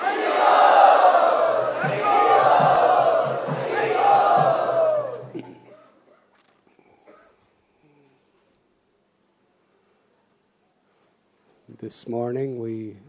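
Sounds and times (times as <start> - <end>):
large crowd loudly chanting a welcome at a devotional gathering: 0.0 - 5.5
steady low rhythmic pulse: 0.8 - 5.8
speech: 11.9 - 13.0.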